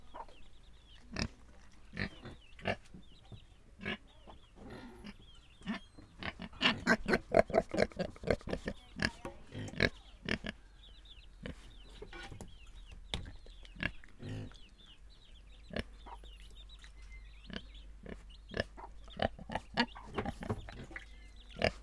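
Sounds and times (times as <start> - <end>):
pigs grunting and snuffling: 1.0 - 2.9, 3.8 - 10.6, 11.4 - 12.2, 13.2 - 14.9, 15.6 - 21.8.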